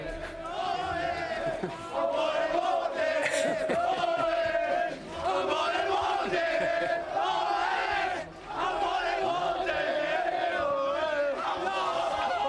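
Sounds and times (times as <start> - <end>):
laughter: 0.1 - 8.9
football players of Unionistas de Salamanca shouting in locker room: 0.3 - 12.4.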